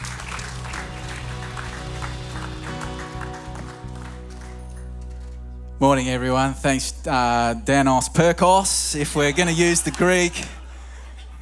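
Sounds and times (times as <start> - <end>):
church congregation clapping to welcome a preacher: 0.0 - 5.5
sustained musical tones: 0.0 - 8.4
speech: 5.8 - 10.6
laughter: 9.0 - 11.4.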